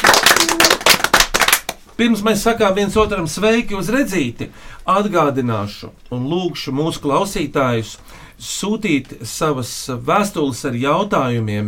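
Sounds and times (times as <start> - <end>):
audience applause: 0.0 - 1.8
speech: 2.0 - 11.6.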